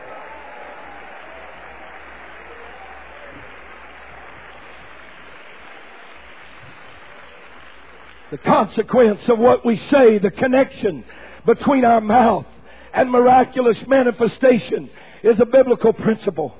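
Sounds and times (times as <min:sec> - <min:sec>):
audience clapping: 0:00.0 - 0:09.0
speech: 0:08.3 - 0:16.5.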